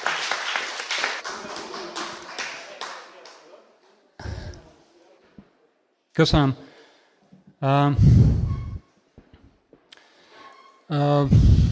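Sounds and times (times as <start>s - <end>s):
audience applause: 0.0s - 3.5s
speech: 6.2s - 6.7s, 7.6s - 8.4s, 10.9s - 11.7s.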